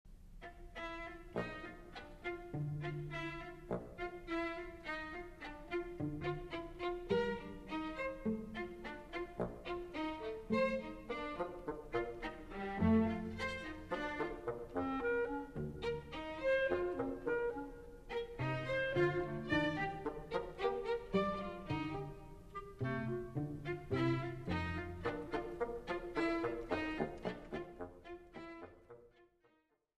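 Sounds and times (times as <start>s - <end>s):
chamber orchestra playing a concerto: 0.8s - 27.8s.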